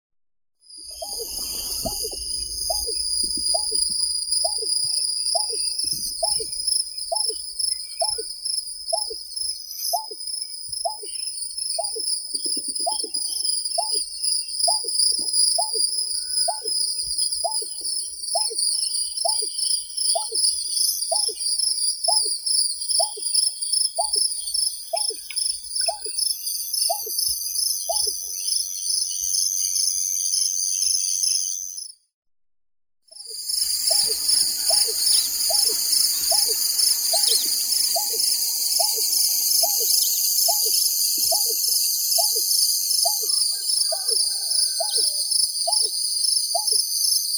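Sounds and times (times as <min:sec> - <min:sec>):
greater painted snipe Rostratula benghalensis calling: 0:01.0 - 0:21.5, 0:22.1 - 0:23.4, 0:24.0 - 0:26.2, 0:33.4 - 0:46.8.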